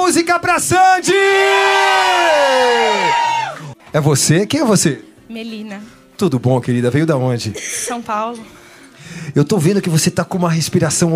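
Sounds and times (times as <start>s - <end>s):
speech: 0.1s - 11.1s
audience shouting: 1.0s - 3.8s
audience clapping: 2.5s - 3.8s.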